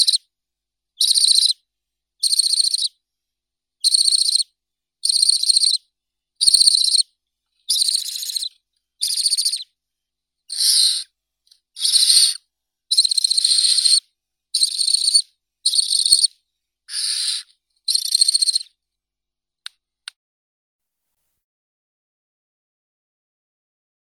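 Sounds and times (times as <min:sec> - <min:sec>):
barn owl Tyto alba chicks calling: 0:00.0 - 0:00.2, 0:01.0 - 0:01.6, 0:02.2 - 0:02.9, 0:03.8 - 0:04.4, 0:05.0 - 0:05.8, 0:06.4 - 0:07.0, 0:07.7 - 0:09.6, 0:10.5 - 0:11.1, 0:11.8 - 0:14.0, 0:14.6 - 0:16.3, 0:16.9 - 0:18.7.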